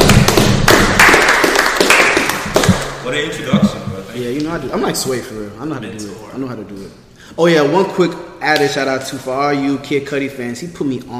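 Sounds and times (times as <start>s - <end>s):
hands clapping: 0.0s - 3.8s
speech: 3.1s - 3.6s, 4.2s - 11.1s.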